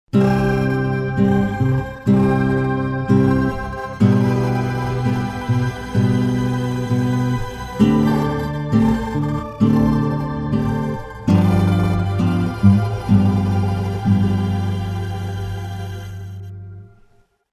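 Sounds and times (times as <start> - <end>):
rising crystalline effect: 0.2 - 16.9.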